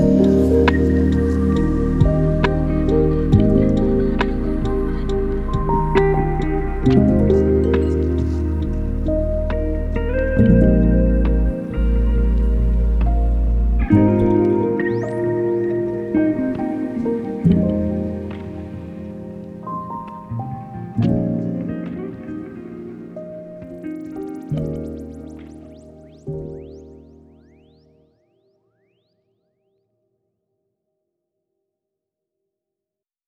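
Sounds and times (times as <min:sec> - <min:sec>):
lofi hip hop: 0:00.0 - 0:26.0.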